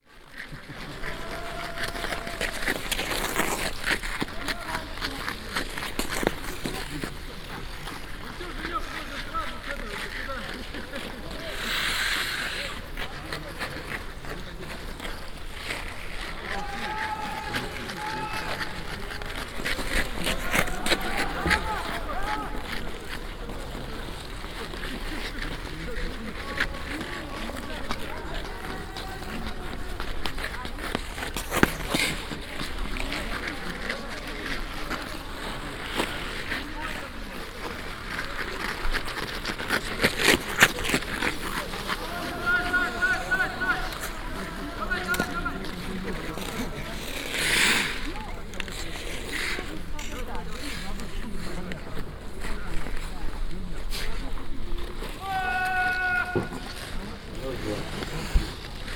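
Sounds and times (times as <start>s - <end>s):
skates rolling: 0.0s - 58.9s.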